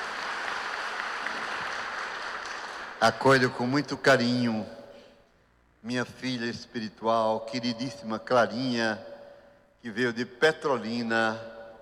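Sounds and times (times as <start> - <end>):
applause for pilgrims: 0.0 - 3.3
speech: 3.0 - 4.8, 5.8 - 9.1, 9.8 - 11.5.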